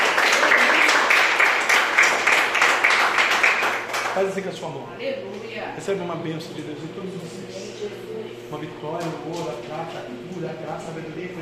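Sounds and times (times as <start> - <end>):
audience clapping hands: 0.0 - 4.5
speech: 4.2 - 11.4.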